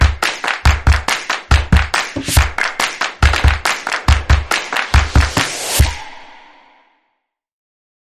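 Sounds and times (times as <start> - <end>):
happy stomps and claps: 0.0 - 6.0.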